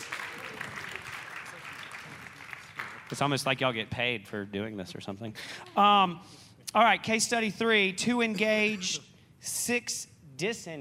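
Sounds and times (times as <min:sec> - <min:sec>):
audience clapping: 0:00.0 - 0:03.7
speech: 0:03.1 - 0:10.7.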